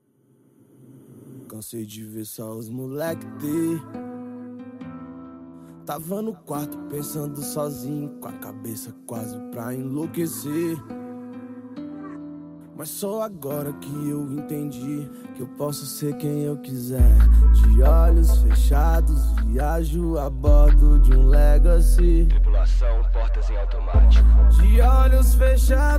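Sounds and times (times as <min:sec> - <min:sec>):
deep hip hop bass: 0:17.0 - 0:25.9.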